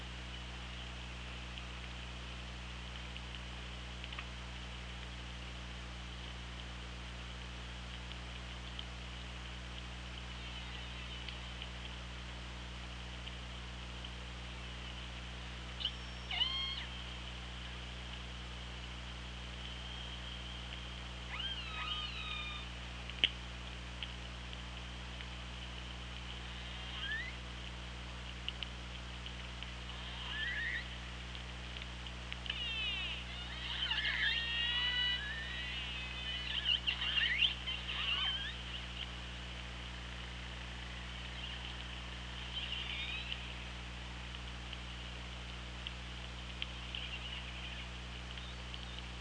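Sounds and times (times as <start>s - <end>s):
hydrophone hum: 0.0s - 49.1s
killer whale calls: 15.8s - 17.0s, 21.3s - 22.8s, 26.4s - 27.4s, 29.9s - 31.0s, 32.4s - 38.9s, 42.4s - 43.6s.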